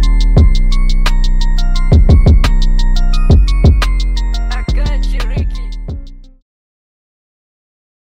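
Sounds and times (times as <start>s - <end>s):
instrumental music: 0.0s - 6.4s.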